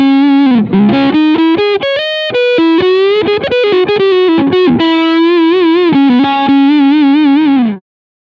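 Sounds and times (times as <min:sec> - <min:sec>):
Yamaha Revstar RS720B electric guitar with overdrive on front humbucker: 0:00.0 - 0:07.8.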